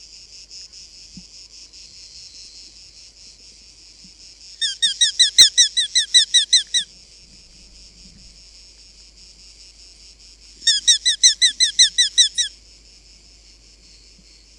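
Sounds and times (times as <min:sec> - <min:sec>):
Eurasian hobby calling: 0:04.6 - 0:06.8, 0:10.7 - 0:12.5.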